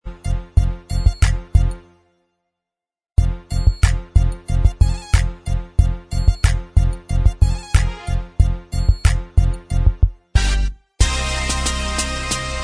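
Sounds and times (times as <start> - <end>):
instrumental music track: 0.1 - 2.3, 3.2 - 12.6.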